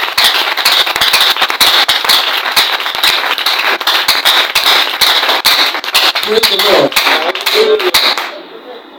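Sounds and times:
audience clapping: 0.0s - 8.4s.

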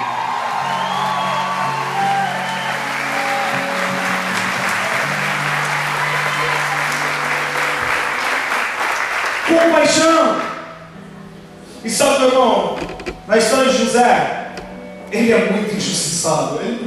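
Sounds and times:
audience applause and cheering with whoops: 0.0s - 10.6s
speech: 9.6s - 10.5s, 11.8s - 14.4s, 15.1s - 16.8s.

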